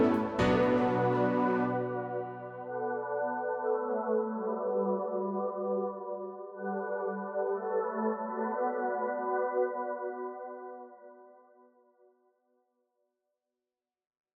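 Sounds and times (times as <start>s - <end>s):
city at night background music: 0.0s - 10.2s.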